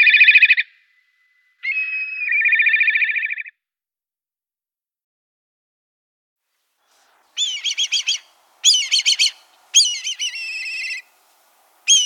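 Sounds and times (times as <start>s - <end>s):
black kite quavering whistle call: 1.6s - 3.4s, 7.4s - 11.2s, 11.8s - 12.0s.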